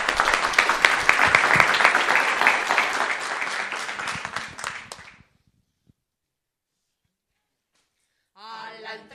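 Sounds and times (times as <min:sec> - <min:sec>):
audience applause: 0:00.0 - 0:05.2.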